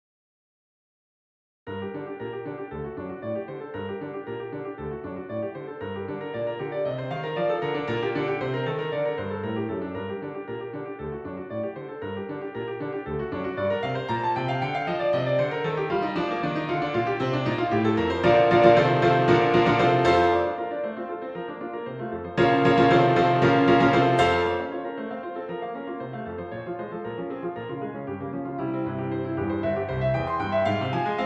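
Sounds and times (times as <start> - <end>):
piano piece in G minor on a Fazioli: 1.7 - 31.2.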